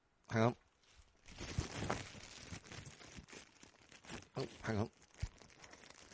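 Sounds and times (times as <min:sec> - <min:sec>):
speech: 0:00.3 - 0:00.6, 0:04.4 - 0:05.0
paper envelope torn open by hand: 0:01.3 - 0:06.1.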